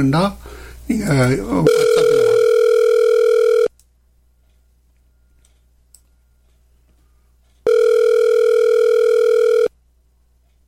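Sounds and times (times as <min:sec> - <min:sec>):
person speaking: 0:00.0 - 0:02.9
WhatsApp call ringing on phone: 0:01.6 - 0:03.7, 0:07.6 - 0:09.7.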